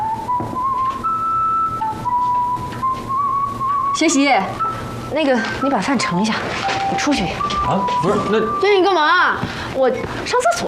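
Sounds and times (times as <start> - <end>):
person whistling a tune: 0.0 - 5.8, 6.8 - 8.9
speech: 4.0 - 10.6.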